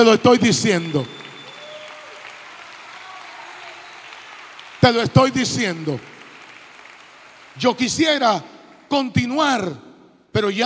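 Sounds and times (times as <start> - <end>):
speech: 0.0 - 1.2, 4.8 - 6.1, 7.6 - 10.6
audience applause: 0.0 - 8.9
whistle-like tone: 0.6 - 2.1.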